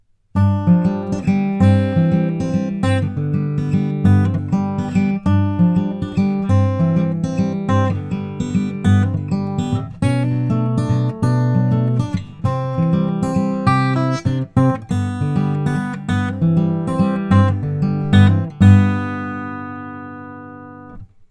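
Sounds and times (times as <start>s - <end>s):
western acoustic guitar picking: 0.4s - 21.2s.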